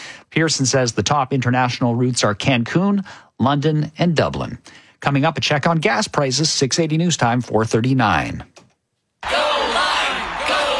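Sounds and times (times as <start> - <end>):
speech: 0.4 - 8.6
crowd cheering and yelling in a radio advert: 9.2 - 10.7.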